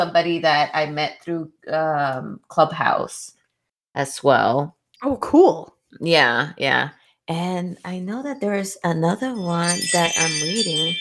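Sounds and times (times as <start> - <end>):
speech: 0.0 - 3.4, 4.0 - 11.0
phone ringing: 9.2 - 11.0.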